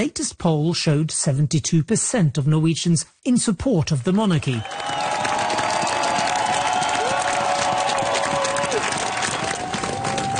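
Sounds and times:
speech: 0:00.0 - 0:05.3
large crowd in Oslo cheering the new king on the palace balcony: 0:04.6 - 0:10.3.

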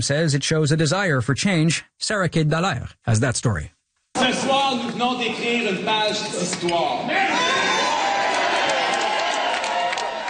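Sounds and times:
speech: 0:00.0 - 0:07.8
ecstatic crowd cheering as Éric Duhaime takes the stage on election night: 0:06.9 - 0:10.2.

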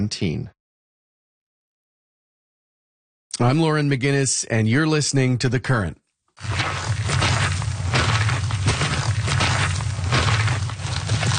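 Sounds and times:
speech: 0:00.0 - 0:00.6, 0:03.4 - 0:07.1
boots walking on a trail: 0:06.4 - 0:11.3.

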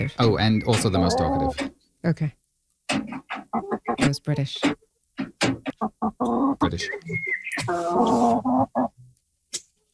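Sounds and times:
speech: 0:00.0 - 0:02.4, 0:04.1 - 0:04.8, 0:06.2 - 0:08.9
Canadian chickens clucking: 0:00.6 - 0:01.7, 0:02.9 - 0:09.1.

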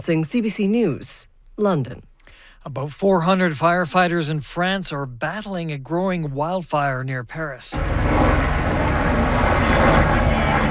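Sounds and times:
speech: 0:00.0 - 0:08.6
helicopter engine and rotors dropping water over a wildfire: 0:07.7 - 0:10.7.

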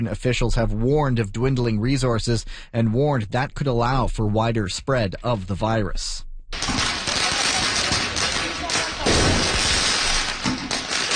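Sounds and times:
speech: 0:00.0 - 0:06.7
firecrackers exploding during street protest: 0:06.6 - 0:11.1
loud chaotic street crowd commotion: 0:06.6 - 0:11.1
people shouting in street protest: 0:07.0 - 0:09.6.

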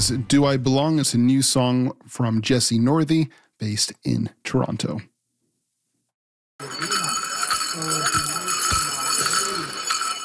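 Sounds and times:
speech: 0:00.0 - 0:05.1
many small metal bells jingling on a jingle dress: 0:06.6 - 0:10.2.

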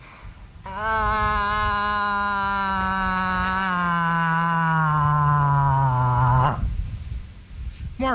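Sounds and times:
person imitating a cow moose's bawling call: 0:00.6 - 0:06.7.

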